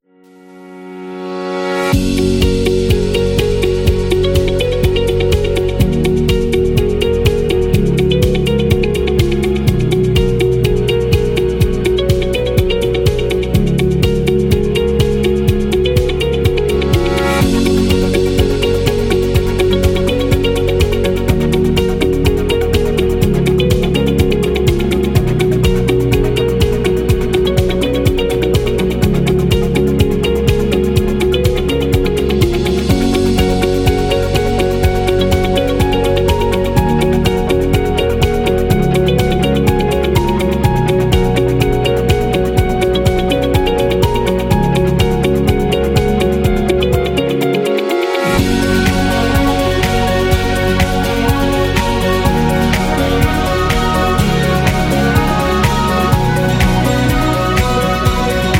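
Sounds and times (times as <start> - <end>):
corporate medical music: 0.0 - 58.5.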